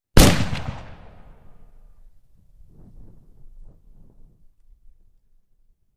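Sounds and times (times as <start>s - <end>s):
WW1 Mauser anti-tank rifle shot: 0.2s - 1.4s.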